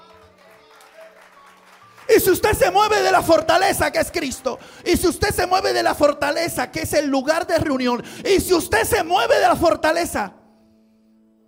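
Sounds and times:
audience applauding: 0.0s - 4.6s
speech: 2.2s - 10.4s.

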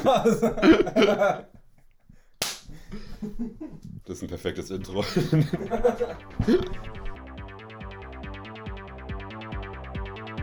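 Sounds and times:
laughter: 0.0s - 1.5s, 5.0s - 7.0s
speech: 0.0s - 1.5s, 3.2s - 7.0s
slap in the face: 2.4s - 2.8s.

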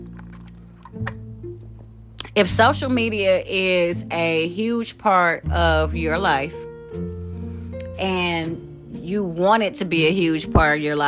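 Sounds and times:
person sipping a mimosa: 0.0s - 1.0s
speech: 2.4s - 7.0s, 8.0s - 11.0s.

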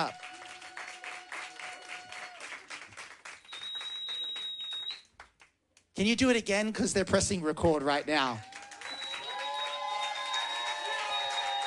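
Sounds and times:
speech: 0.0s - 0.2s, 6.0s - 8.5s
audience applause: 0.0s - 5.0s, 8.1s - 11.6s.

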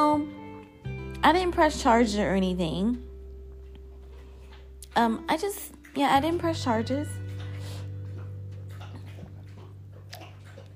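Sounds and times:
speech: 1.2s - 3.1s, 5.0s - 7.2s
dog lapping water: 3.9s - 10.7s.

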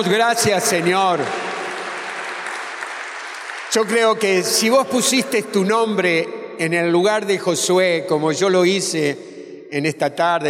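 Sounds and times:
speech: 0.0s - 1.4s, 3.7s - 10.4s
audience applause: 0.6s - 4.1s.

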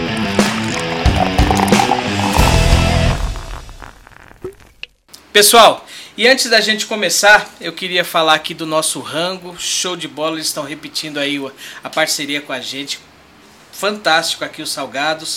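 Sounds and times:
podcast intro jingle: 0.1s - 3.9s
speech: 5.4s - 13.1s, 13.7s - 15.3s.

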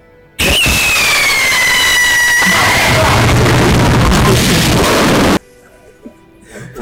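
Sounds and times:
firework rocket exploding: 0.4s - 5.4s.

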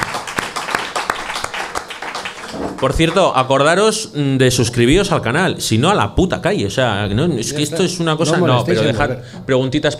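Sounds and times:
audience applause: 0.0s - 3.2s
speech: 2.5s - 9.9s.

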